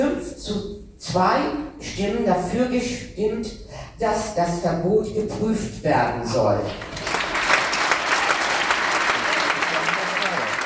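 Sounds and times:
speech: 0.0 - 6.9
audience applause: 6.8 - 10.6.

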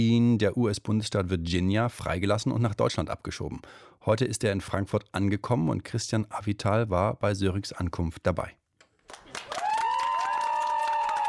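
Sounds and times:
speech: 0.0 - 9.2
crowd clapping in Frankfurt as Jens Söring arrives: 9.0 - 11.2.

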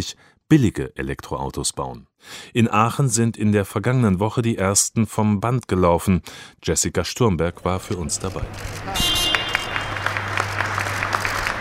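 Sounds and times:
speech: 0.0 - 9.1
employees applauding as car leaves hall: 8.0 - 11.5.

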